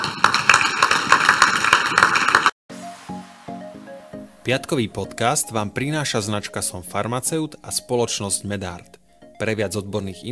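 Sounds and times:
applause: 0:00.0 - 0:02.6
speech: 0:04.5 - 0:10.2.

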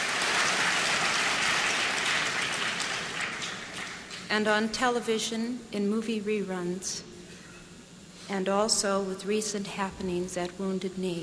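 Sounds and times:
large audience clapping: 0:00.0 - 0:04.3
speech: 0:04.3 - 0:07.1, 0:08.3 - 0:11.2.

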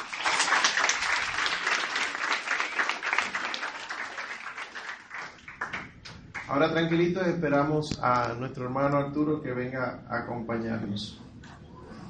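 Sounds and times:
audience applause: 0:00.0 - 0:06.5
speech: 0:06.5 - 0:11.2.

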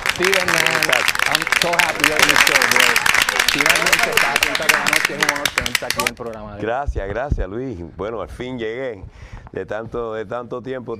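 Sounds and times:
audience applause: 0:00.0 - 0:06.2
man calling out and talking excitedly: 0:00.0 - 0:06.4
speech: 0:00.2 - 0:10.9.

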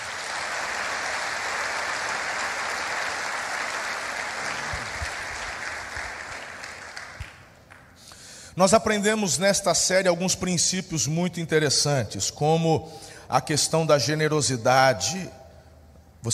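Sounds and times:
church audience applause: 0:00.0 - 0:07.5
speech: 0:08.6 - 0:15.4.

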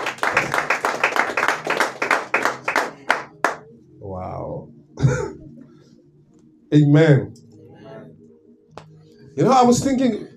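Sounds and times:
audience clapping hands: 0:00.0 - 0:03.6
speech: 0:06.7 - 0:07.4, 0:09.4 - 0:10.3.

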